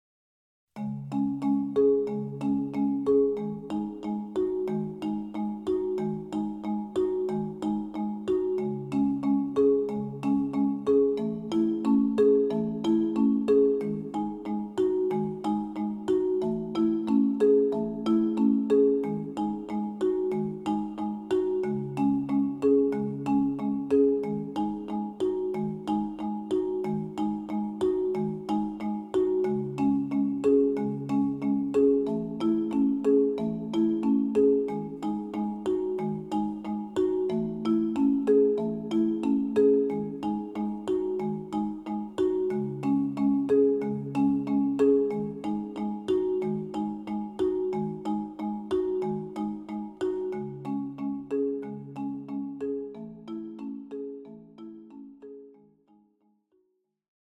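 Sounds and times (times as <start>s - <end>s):
marimba: 0.8s - 56.0s.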